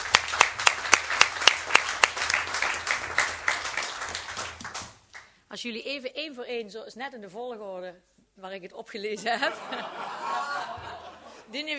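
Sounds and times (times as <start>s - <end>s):
warm applause: 0.0s - 5.3s
speech: 5.6s - 10.8s, 11.5s - 11.7s
laughter: 9.2s - 11.5s.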